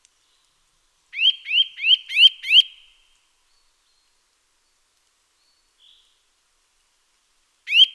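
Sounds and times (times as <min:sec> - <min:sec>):
Eurasian nuthatch Sitta europaea calling with loud rising whistles: 0:01.2 - 0:02.8, 0:07.7 - 0:07.9.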